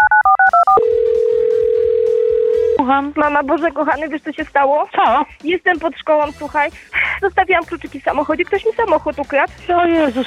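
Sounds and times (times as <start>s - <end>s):
two-tone telephone keypad beeps dialing: 0.0s - 2.6s
telephone call ringing tone: 0.0s - 2.8s
speech: 2.9s - 10.2s.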